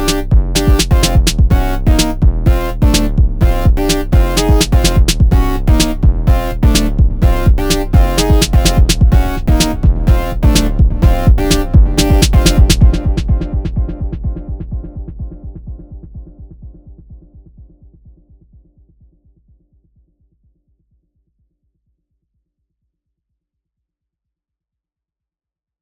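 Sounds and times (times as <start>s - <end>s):
instrumental music: 0.0s - 14.9s.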